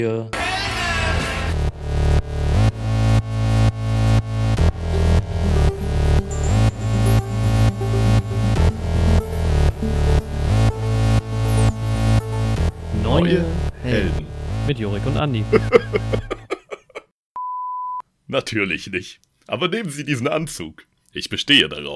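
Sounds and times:
speech: 0.0 - 0.4, 14.8 - 16.2, 18.3 - 21.9
driving electronic podcast intro music: 1.6 - 15.8
laughter: 15.4 - 17.1.

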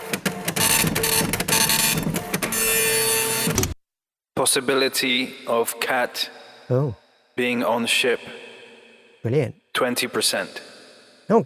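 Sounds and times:
computer scanning sound effect: 0.0 - 3.8
speech: 4.4 - 8.4, 9.2 - 10.7, 11.3 - 11.4.

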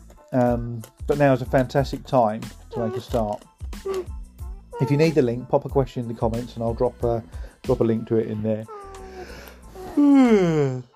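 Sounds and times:
speech: 0.3 - 4.1, 4.8 - 8.8, 10.0 - 10.9
person yawning: 3.8 - 4.1, 9.0 - 10.9.

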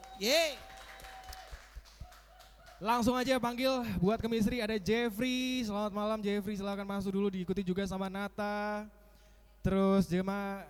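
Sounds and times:
small group applauding: 0.0 - 3.3
speech: 0.2 - 0.7, 2.8 - 9.0, 9.6 - 10.6.

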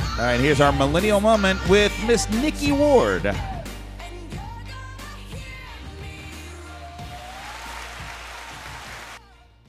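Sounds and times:
speech: 0.2 - 3.5
audience applause: 7.0 - 9.2.

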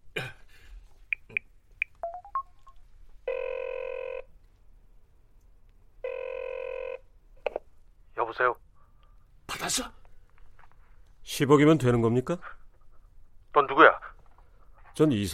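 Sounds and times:
phone keypad tones: 1.9 - 4.2
speech: 8.4 - 8.6, 9.6 - 10.0, 11.3 - 12.6, 13.5 - 14.0, 15.0 - 15.3.

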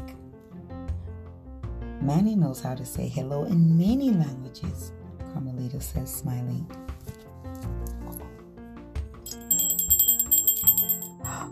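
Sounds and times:
speech: 2.0 - 7.0
ice cream truck bell: 9.3 - 11.4.

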